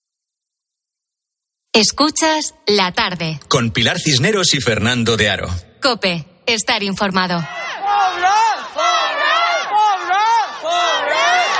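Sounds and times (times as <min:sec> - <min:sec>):
speech: 0:01.8 - 0:08.4
protesters in China chanting in unison: 0:07.5 - 0:11.5.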